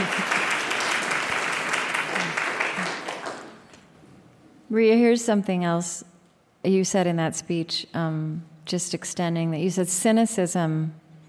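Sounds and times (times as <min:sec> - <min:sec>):
laughter: 0:00.0 - 0:01.1
audience applause: 0:00.0 - 0:03.8
speech: 0:04.7 - 0:11.0.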